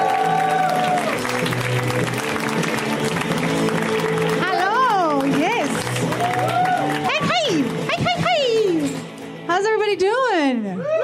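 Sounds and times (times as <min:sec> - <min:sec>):
audience applause for comedian: 0:00.0 - 0:08.6
walk-on music with sustained tones: 0:00.0 - 0:10.2.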